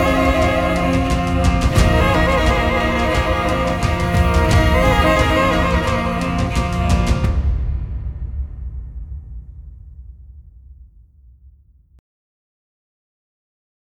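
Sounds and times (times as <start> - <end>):
music interlude: 0.0 - 7.5.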